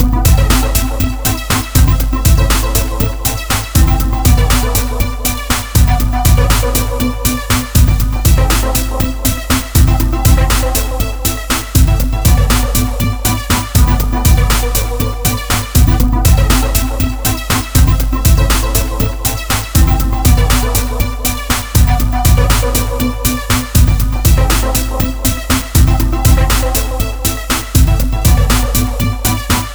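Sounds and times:
loading music: 0:00.0 - 0:29.7.

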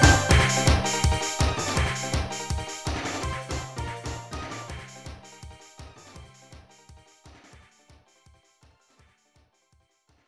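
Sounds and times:
warning background music: 0:00.0 - 0:06.4.

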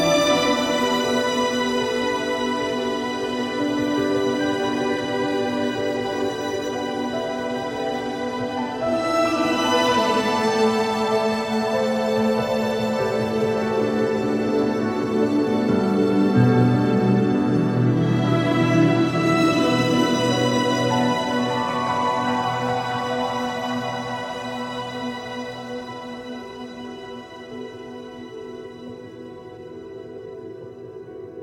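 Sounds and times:
piano: 0:00.0 - 0:31.3.

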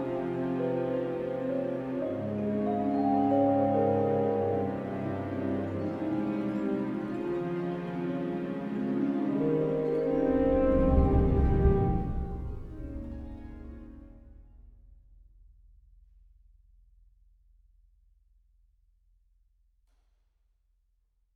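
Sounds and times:
world music: 0:00.0 - 0:14.2.

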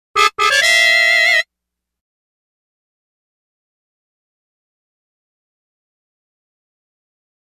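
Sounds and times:
party ball jingle: 0:00.2 - 0:01.4.

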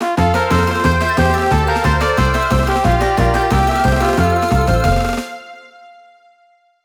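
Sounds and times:
bonus win sound: 0:00.2 - 0:05.2.

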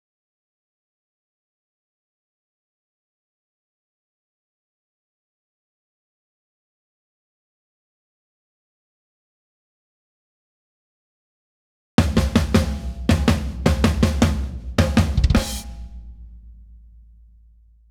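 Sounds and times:
drums: 0:12.0 - 0:16.8.

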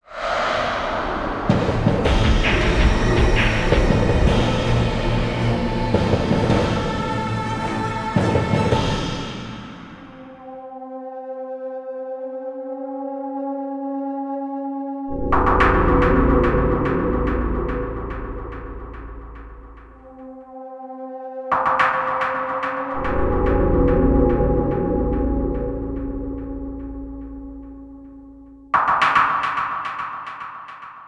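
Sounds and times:
gloomy industrial music: 0:00.1 - 0:30.4.

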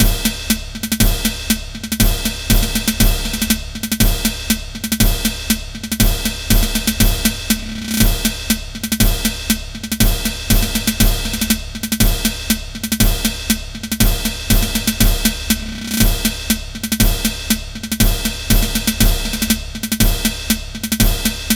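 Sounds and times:
drums: 0:00.0 - 0:21.5.

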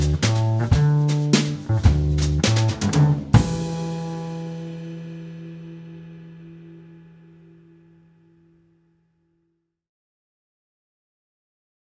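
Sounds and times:
rhythmic music arrangement: 0:00.0 - 0:05.5.

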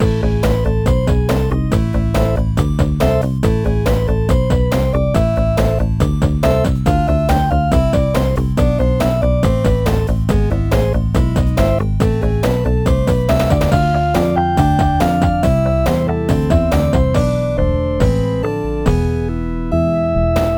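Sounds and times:
boss battle music loop: 0:00.0 - 0:20.5.

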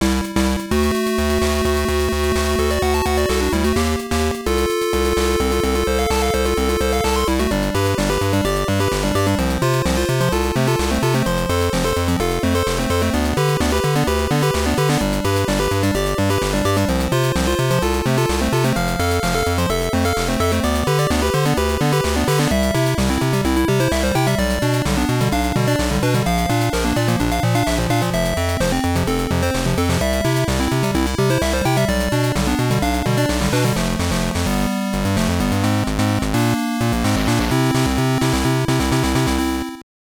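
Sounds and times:
background music: 0:00.0 - 0:39.8.

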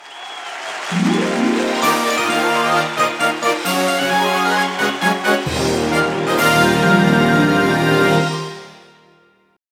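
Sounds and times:
maximum score jingle: 0:00.9 - 0:09.4.

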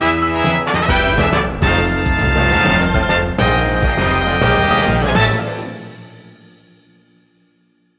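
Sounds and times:
level completed jingle: 0:00.1 - 0:06.2.

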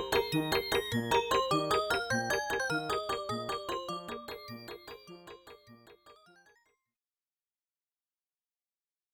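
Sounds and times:
waltz music: 0:00.0 - 0:05.4.

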